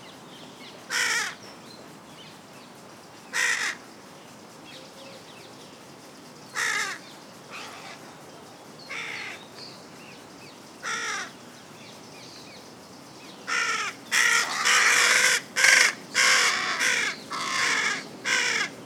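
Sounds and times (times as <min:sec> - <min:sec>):
Carrion crow Corvus corone giving harsh grating caws: 0:00.9 - 0:01.4, 0:03.4 - 0:03.8, 0:06.6 - 0:07.0, 0:10.8 - 0:11.3, 0:13.5 - 0:18.8.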